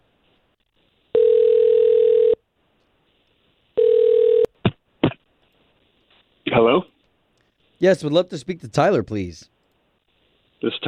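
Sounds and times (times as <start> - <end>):
telephone ringback tone: 1.1 - 2.4, 3.8 - 4.5
speech: 6.6 - 6.9, 7.8 - 9.5, 10.6 - 10.8.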